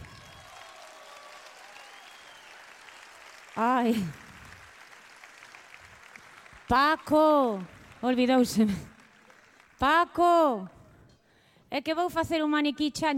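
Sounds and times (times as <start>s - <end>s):
audience applause: 0.0s - 7.0s, 7.6s - 9.8s
speech: 3.6s - 4.2s, 6.7s - 8.9s, 9.8s - 10.8s, 11.7s - 13.1s.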